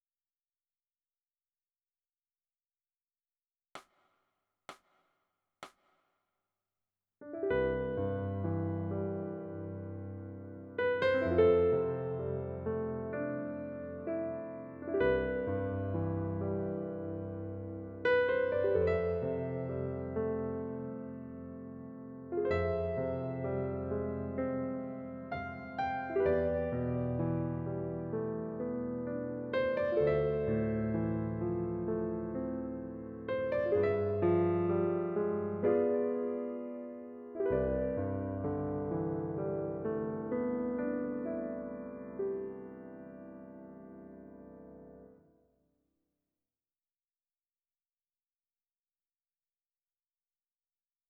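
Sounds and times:
piano: 0:07.2 - 0:45.6.

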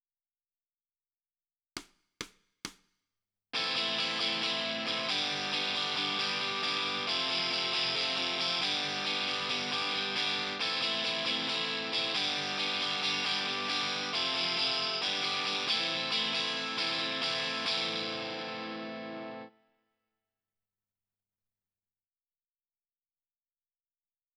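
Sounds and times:
guitar: 0:03.6 - 0:19.7.

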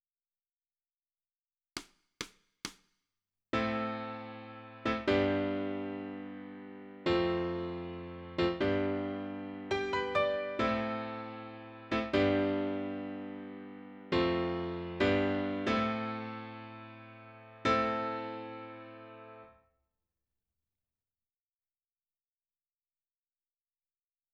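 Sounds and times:
piano: 0:03.6 - 0:19.6.

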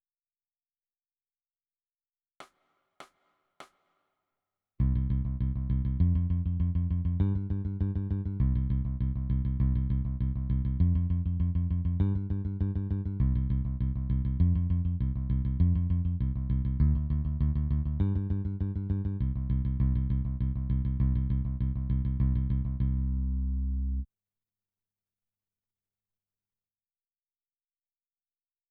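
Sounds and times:
bass: 0:04.8 - 0:24.1.

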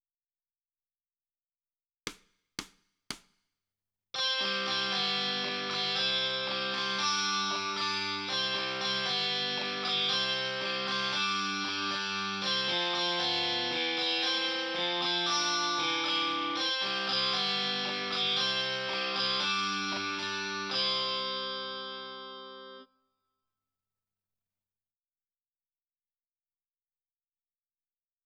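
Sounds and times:
guitar: 0:04.2 - 0:22.9.

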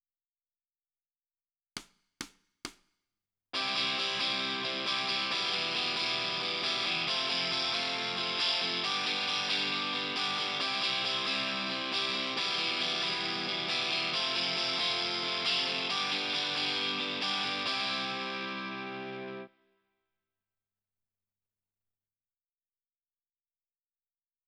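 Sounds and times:
guitar: 0:03.6 - 0:19.6.

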